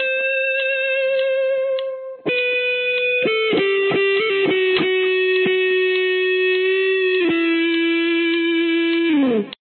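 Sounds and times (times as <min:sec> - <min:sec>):
guitar lick: 0:00.0 - 0:09.5.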